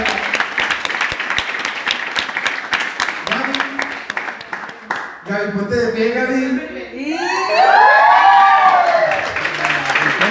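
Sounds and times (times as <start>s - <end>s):
audience applause: 0.0s - 5.1s, 7.6s - 10.2s
speech: 5.3s - 7.4s.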